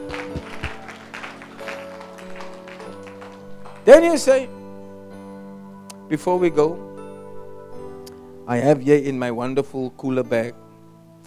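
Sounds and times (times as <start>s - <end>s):
church audience clapping for Jesus: 0.0s - 4.3s
speech: 3.9s - 4.6s, 6.1s - 6.9s, 8.5s - 10.6s.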